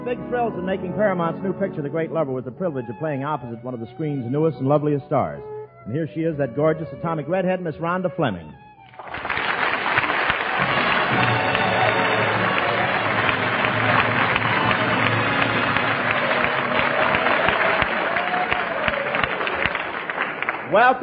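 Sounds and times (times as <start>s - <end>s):
speech: 0.1s - 8.6s, 20.7s - 21.0s
audience applause: 8.9s - 21.0s.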